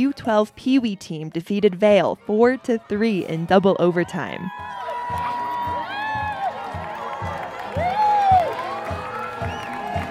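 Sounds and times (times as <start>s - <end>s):
speech: 0.0s - 5.2s
street parade crowd cheering: 2.8s - 10.1s
low thumping beat: 4.5s - 10.1s.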